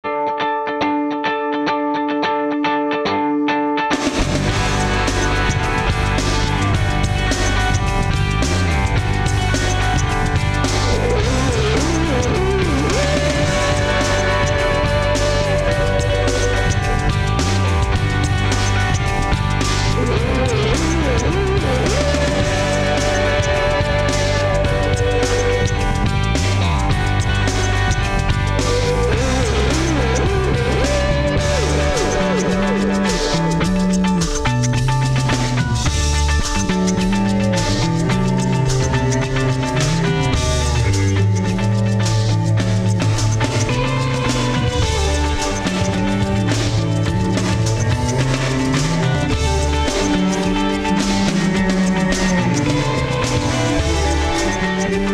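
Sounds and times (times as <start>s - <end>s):
hard rock music: 0.0s - 55.1s.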